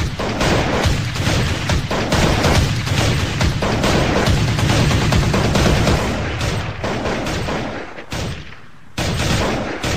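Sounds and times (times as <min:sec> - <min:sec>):
gunfire in a multiplayer shooting video game: 0:00.0 - 0:08.4.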